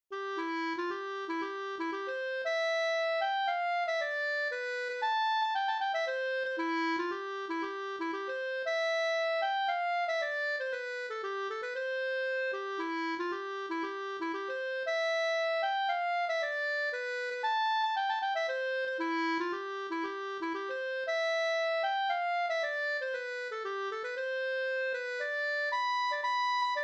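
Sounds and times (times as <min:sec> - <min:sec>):
polska folk dance tune: 0:00.2 - 0:26.8.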